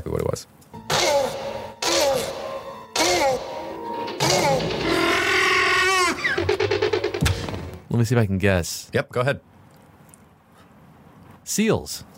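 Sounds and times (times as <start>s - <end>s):
velociraptor bark built from mating tortoise calls: 0.8s - 4.8s
wavering shriek breaking into rapid stuttering croaks: 3.8s - 7.0s
speech: 8.0s - 9.5s, 11.5s - 12.1s.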